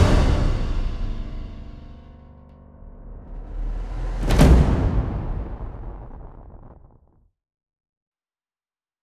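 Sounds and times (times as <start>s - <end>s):
powerful dramatic epic drums: 0.0s - 7.1s.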